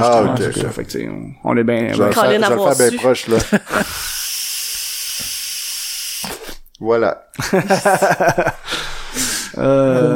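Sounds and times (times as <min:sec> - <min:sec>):
speech: 0:00.0 - 0:04.2, 0:06.8 - 0:10.1
laughter: 0:03.1 - 0:04.1, 0:07.4 - 0:08.8
electronic cigarette being puffed with an airy hiss: 0:03.9 - 0:06.6.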